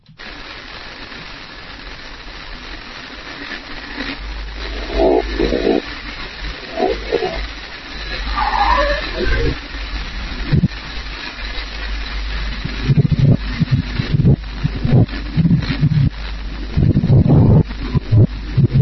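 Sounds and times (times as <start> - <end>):
reversed recording of low, rough growl-like rumbling: 4.2 - 18.8.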